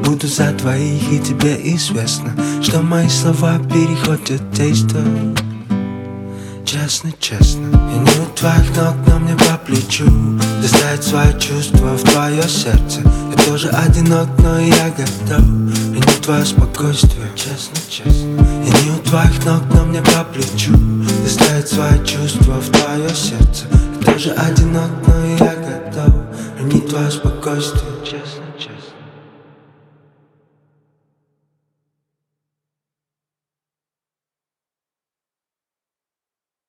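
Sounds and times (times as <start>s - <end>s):
acoustic music: 0.0s - 28.2s.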